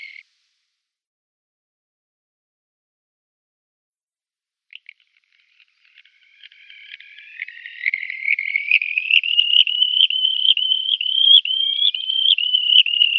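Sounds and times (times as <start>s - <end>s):
red-rumped wheatear scratchy buzzing song: 4.8s - 13.1s.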